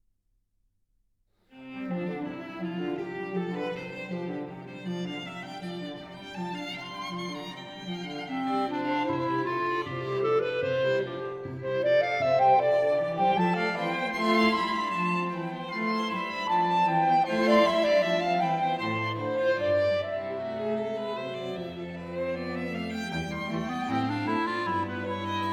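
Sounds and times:
classical prelude, allegro deciso: 1.5 - 25.5.

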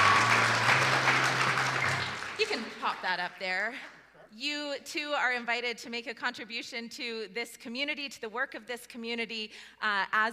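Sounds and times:
audience applause: 0.0 - 3.0
speech: 3.0 - 10.3.

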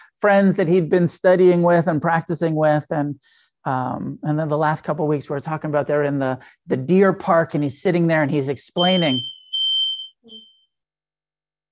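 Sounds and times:
speech: 0.2 - 9.4
smoke alarm going off: 8.8 - 10.7.

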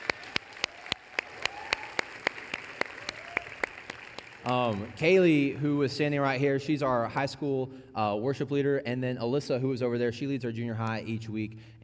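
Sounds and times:
audience applause: 0.0 - 5.1
crisp evenly spaced claps: 0.0 - 5.1
speech: 4.4 - 11.8.

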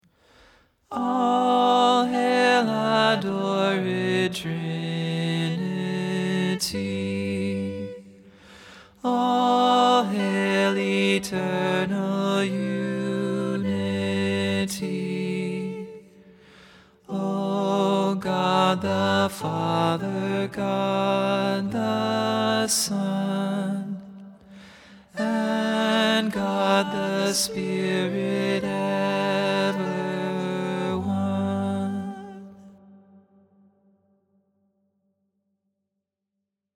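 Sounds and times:
prominent tenor voice singing: 0.9 - 8.2, 9.0 - 16.2, 17.0 - 24.2, 25.1 - 32.8.

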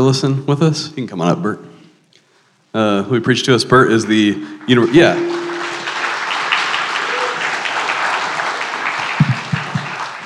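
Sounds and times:
speech: 0.0 - 1.7, 2.8 - 5.4
crowd clapping: 4.0 - 10.2.

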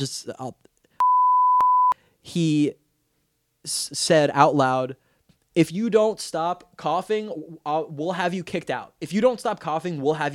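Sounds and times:
speech: 0.0 - 0.7, 2.2 - 2.8, 3.6 - 5.0, 5.6 - 10.3
high-pitched censor bleep: 1.0 - 2.0.

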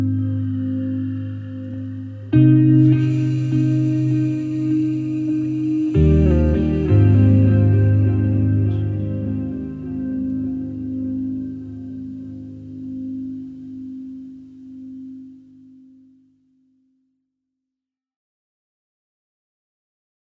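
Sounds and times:
ambient music: 0.0 - 16.2.

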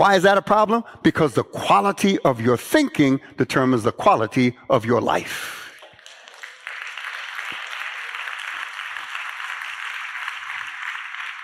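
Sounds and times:
speech: 0.0 - 5.6
audience clapping: 5.7 - 11.4.

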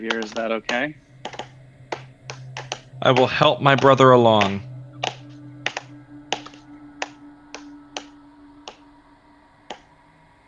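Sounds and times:
speech: 0.0 - 1.4, 3.0 - 4.7
faint steady low hum: 0.0 - 10.4
rhythmic hand clapping: 0.1 - 0.5, 1.3 - 8.1.

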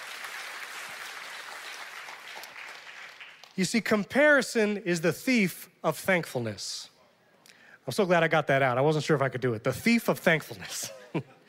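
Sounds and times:
audience clapping: 0.0 - 3.9
speech: 3.6 - 6.9, 7.9 - 11.4.

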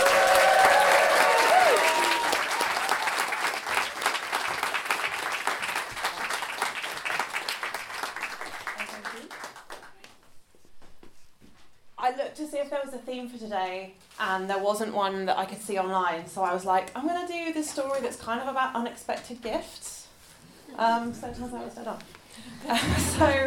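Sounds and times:
cheers: 0.0 - 4.2
large audience applause: 0.0 - 10.1
speech: 12.7 - 19.8, 20.8 - 23.4
laughter: 22.6 - 23.4.

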